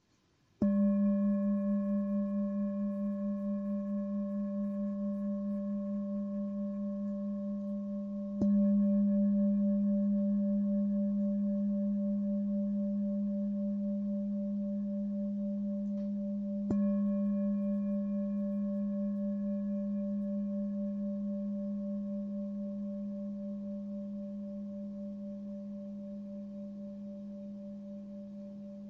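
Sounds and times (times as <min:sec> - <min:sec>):
Tibetan singing bowls ringing at 204 Hz: 0:00.6 - 0:28.8.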